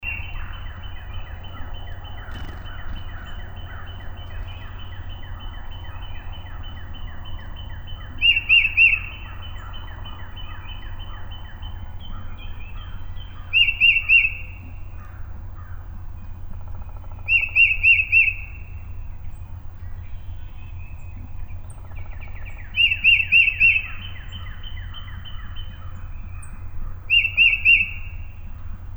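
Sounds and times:
tufted titmouse call: 0:00.0 - 0:14.7, 0:17.3 - 0:18.8, 0:22.3 - 0:26.5, 0:27.1 - 0:28.3.

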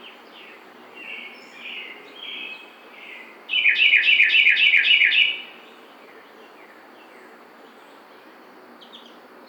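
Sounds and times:
Carolina wren singing: 0:00.0 - 0:09.4.

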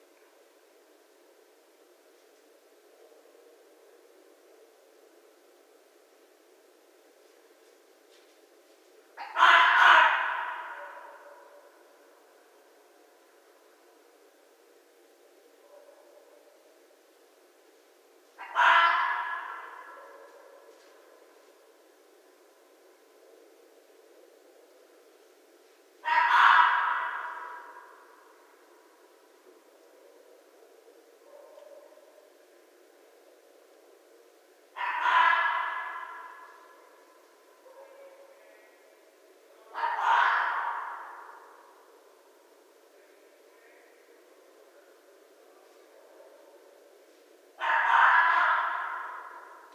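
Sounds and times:
red fox raspy screaming: 0:09.2 - 0:11.8, 0:18.4 - 0:20.8, 0:26.0 - 0:28.4, 0:34.7 - 0:37.0, 0:39.6 - 0:41.9, 0:47.6 - 0:49.7.

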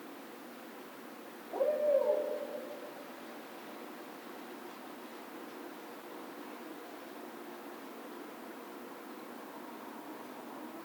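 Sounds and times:
faint hiss: 0:00.0 - 0:10.8
barred owl hooting: 0:01.5 - 0:03.0.

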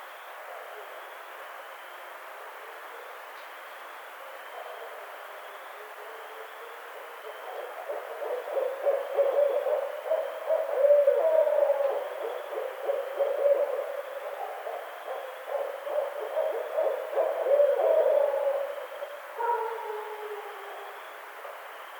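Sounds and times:
barred owl hooting: 0:07.1 - 0:21.7.

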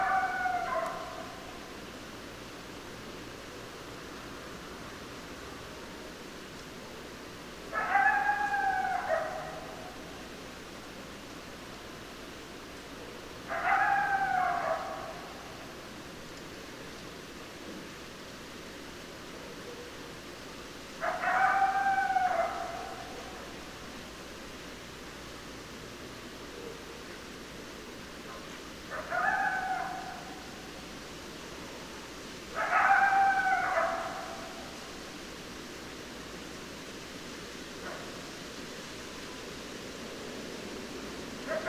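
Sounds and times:
coyote howling: 0:00.0 - 0:01.4, 0:07.7 - 0:10.0, 0:13.5 - 0:15.3, 0:21.0 - 0:23.5, 0:28.9 - 0:30.6, 0:32.5 - 0:34.7, 0:41.5 - 0:41.6
steady hiss: 0:00.0 - 0:41.6.

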